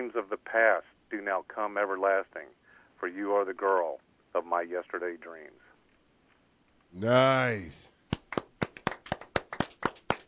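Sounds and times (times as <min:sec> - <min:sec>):
speech: 0:00.0 - 0:05.6, 0:06.9 - 0:08.4
rhythmic hand clapping for a live band performance: 0:08.1 - 0:10.2.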